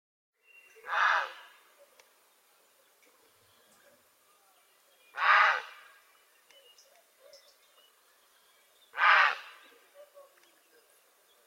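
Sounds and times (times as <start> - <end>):
grey heron giving harsh gravelly croaks: 5.2 - 5.9, 8.9 - 10.1.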